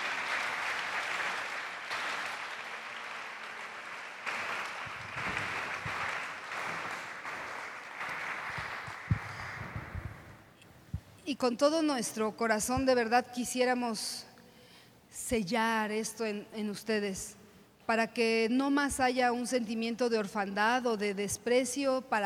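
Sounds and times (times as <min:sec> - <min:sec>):
crowd applauding: 0:00.0 - 0:10.4
loud claps and thumps: 0:00.0 - 0:11.1
speech: 0:11.3 - 0:14.3, 0:15.3 - 0:22.2.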